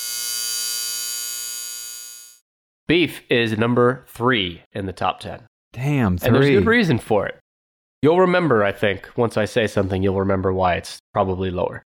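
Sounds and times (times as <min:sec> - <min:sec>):
buzzer sound effect: 0:00.0 - 0:02.4
speech: 0:02.9 - 0:07.4, 0:08.0 - 0:11.9.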